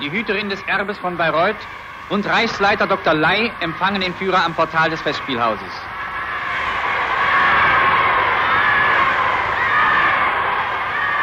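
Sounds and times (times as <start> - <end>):
speech: 0.0 - 5.9
crowd cheering and shouting at the Bayreuth Festspielhaus: 4.8 - 11.2.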